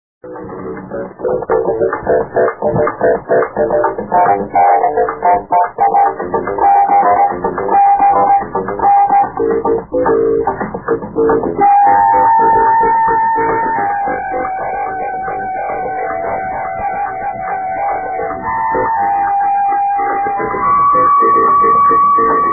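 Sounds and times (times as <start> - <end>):
electronic drums: 0.3 - 22.5.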